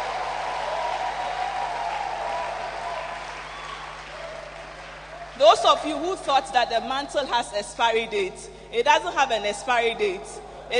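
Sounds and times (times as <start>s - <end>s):
audience clapping hands: 0.0s - 5.9s
speech: 5.4s - 10.7s.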